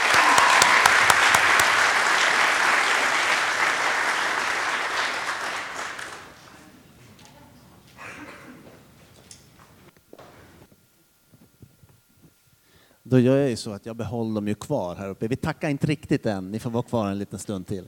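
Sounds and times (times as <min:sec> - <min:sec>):
audience applause: 0:00.0 - 0:06.7
speech: 0:13.1 - 0:17.8.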